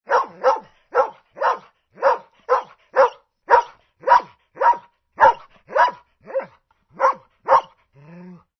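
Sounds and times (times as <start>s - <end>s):
dog: 0.0s - 7.9s.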